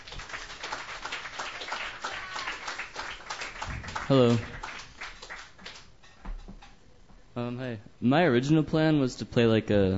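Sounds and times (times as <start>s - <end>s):
open mic audience clapping to welcome a singer-songwriter: 0.0s - 6.0s
speech: 4.1s - 4.6s, 7.4s - 9.9s.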